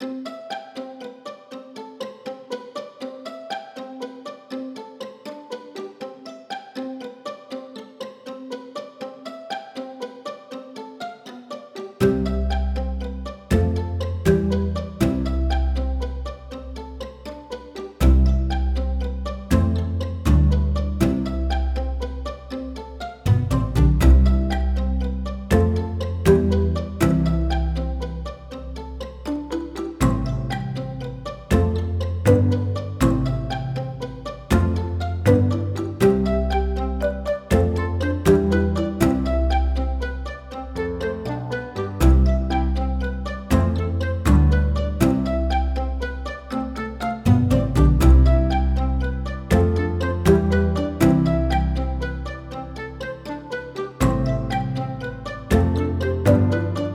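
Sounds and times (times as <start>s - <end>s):
uplifting spring music: 12.0s - 56.9s.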